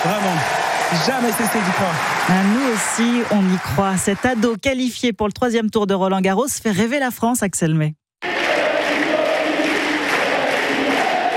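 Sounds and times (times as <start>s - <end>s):
speech: 0.9s - 8.0s
crowd at Roland-Garros tennis chanting a player's first name: 8.2s - 11.3s.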